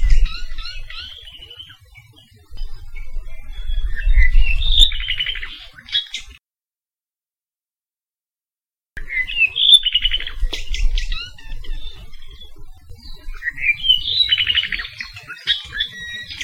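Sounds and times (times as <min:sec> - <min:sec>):
apapane calls along Saddle Road in Hawaii: 0:00.0 - 0:06.4, 0:09.0 - 0:16.4.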